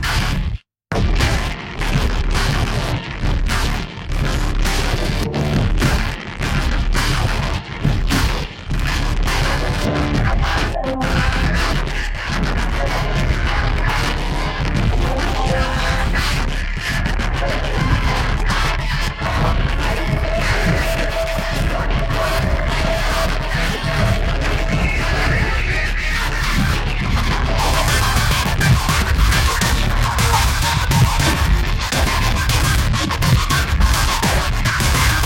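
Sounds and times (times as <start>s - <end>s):
distorted 303 synth: 0.0s - 35.2s
gabber music: 1.0s - 35.2s.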